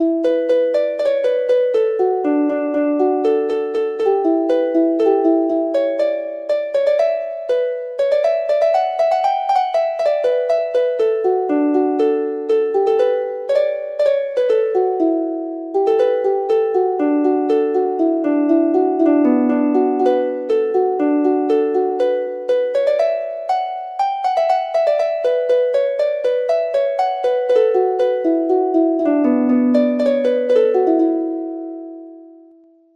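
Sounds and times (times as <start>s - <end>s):
harp: 0.0s - 32.8s.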